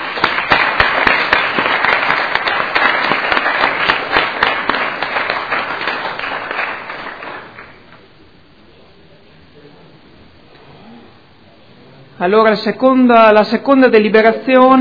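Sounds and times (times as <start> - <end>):
council members applauding: 0.0 - 8.1
speech: 12.2 - 14.7.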